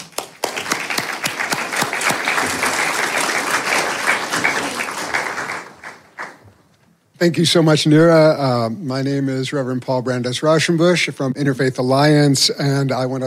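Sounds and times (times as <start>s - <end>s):
audience applause welcoming panelists onto the stage at a discussion gathering: 0.0s - 6.4s
speech: 7.2s - 13.2s.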